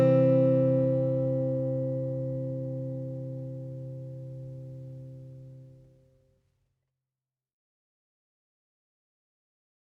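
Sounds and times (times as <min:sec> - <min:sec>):
guitar: 0:00.0 - 0:06.1.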